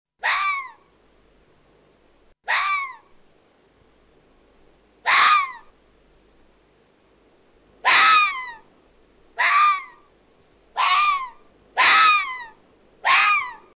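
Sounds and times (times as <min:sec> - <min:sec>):
red fox: 0:00.2 - 0:00.9, 0:02.5 - 0:03.1, 0:07.8 - 0:08.6, 0:09.4 - 0:10.0, 0:10.8 - 0:13.7.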